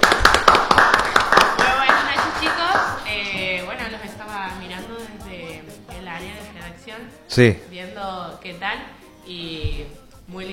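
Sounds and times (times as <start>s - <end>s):
applause for a guest: 0.0s - 3.1s
speech: 6.9s - 10.5s.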